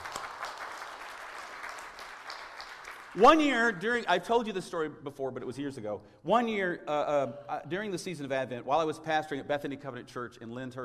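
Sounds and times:
audience applause: 0.0s - 4.0s
speech: 3.1s - 10.8s.

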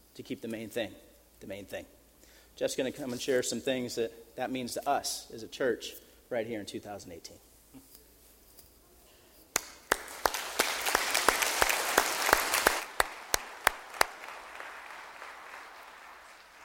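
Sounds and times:
speech: 0.2s - 2.0s, 2.6s - 7.8s
sharp individual claps: 9.5s - 16.6s
church congregation at East Jordan applauding: 9.6s - 16.6s.

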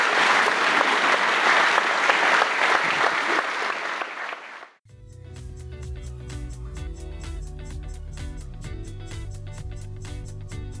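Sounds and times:
audience round of applause: 0.0s - 4.8s.

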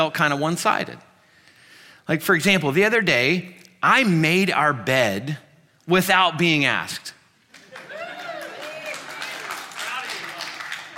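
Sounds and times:
speech: 0.0s - 1.1s, 2.1s - 7.2s
crowd of men clapping: 7.5s - 10.9s
whoops and cheers: 7.6s - 9.6s.

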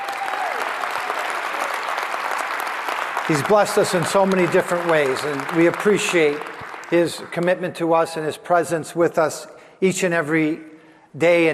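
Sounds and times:
audience round of applause: 0.0s - 7.6s
speech: 3.3s - 11.5s.

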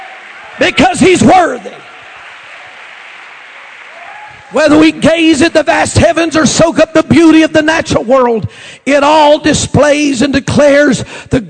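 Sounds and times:
audience clapping hands: 0.0s - 5.3s
speech: 0.6s - 1.9s, 4.5s - 11.4s.

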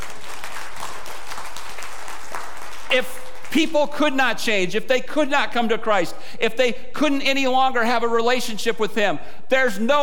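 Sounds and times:
audience clapping: 0.0s - 3.8s
speech: 2.9s - 10.0s.

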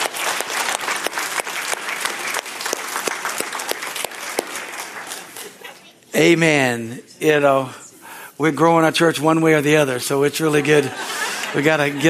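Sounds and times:
audience applause: 0.0s - 5.6s, 10.6s - 12.0s
laughter: 5.3s - 6.0s, 10.3s - 12.0s
speech: 6.2s - 7.8s, 8.4s - 12.0s.

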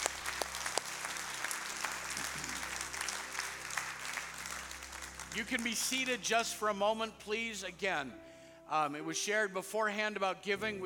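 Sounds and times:
audience clapping hands: 0.0s - 6.5s
speech: 5.4s - 10.8s.

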